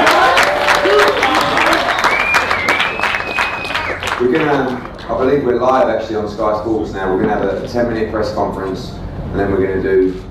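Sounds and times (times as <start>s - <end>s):
audience applause: 0.0s - 5.9s
speech: 4.4s - 10.2s.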